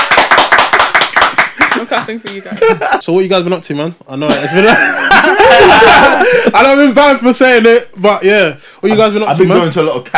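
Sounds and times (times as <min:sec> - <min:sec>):
hand clapping: 0:00.0 - 0:02.5
speech: 0:02.1 - 0:10.1
laughter: 0:02.3 - 0:03.0, 0:04.3 - 0:06.8.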